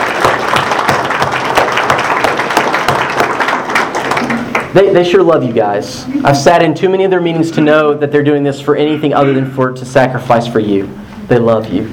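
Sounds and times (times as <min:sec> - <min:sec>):
audience applause: 0:00.0 - 0:04.8
speech: 0:04.7 - 0:11.9.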